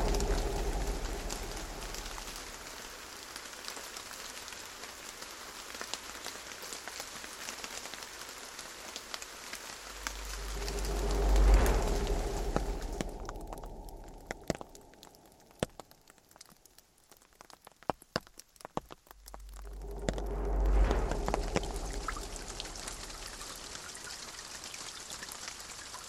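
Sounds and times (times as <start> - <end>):
thunder: 0.0 - 3.0, 9.8 - 15.4, 19.2 - 24.0
rain: 0.0 - 26.0.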